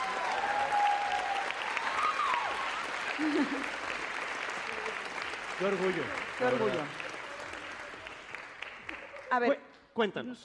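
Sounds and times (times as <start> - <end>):
applause: 0.0 - 9.6
speech: 3.2 - 3.8, 5.6 - 7.0, 9.3 - 10.4.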